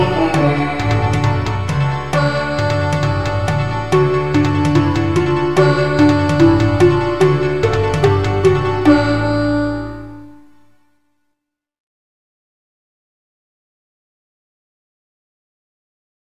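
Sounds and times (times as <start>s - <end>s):
pakhavaj drum: 0.0s - 9.3s
tabla: 0.0s - 10.8s.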